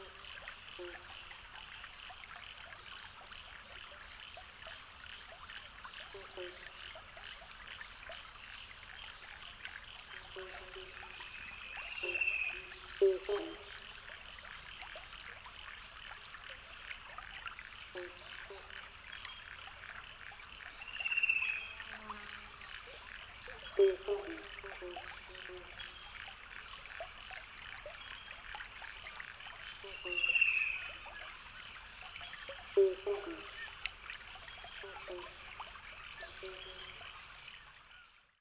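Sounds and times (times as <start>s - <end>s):
frogs: 0.0s - 38.3s
cuckoos: 11.8s - 14.1s, 17.9s - 18.9s, 21.1s - 26.0s, 29.8s - 31.4s, 32.2s - 33.8s, 34.6s - 37.2s.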